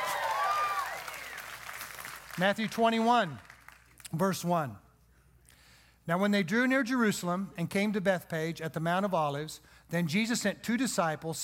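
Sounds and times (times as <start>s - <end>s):
audience clapping: 0.0s - 4.2s
speech: 2.4s - 3.5s, 4.1s - 4.8s, 6.1s - 11.4s.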